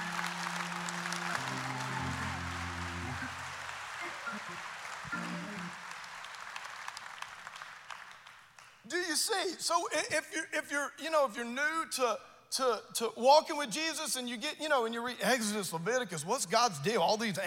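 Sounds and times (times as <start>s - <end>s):
audience clapping: 0.0s - 9.1s
speech: 9.1s - 17.4s.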